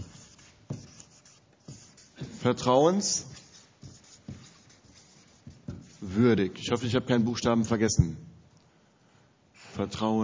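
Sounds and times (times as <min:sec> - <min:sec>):
pen scratching on paper writing by hand: 0:00.0 - 0:02.7, 0:03.3 - 0:06.1
speech: 0:02.4 - 0:03.3, 0:06.1 - 0:08.3, 0:09.8 - 0:10.2.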